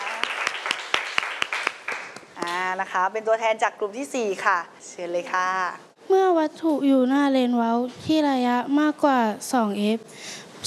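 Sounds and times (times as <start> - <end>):
classroom applause: 0.0 - 2.4
speech: 2.8 - 10.6.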